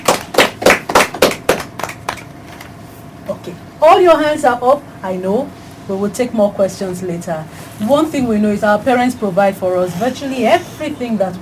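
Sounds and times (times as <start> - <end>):
applause: 0.0 - 2.7
speech: 3.4 - 11.4.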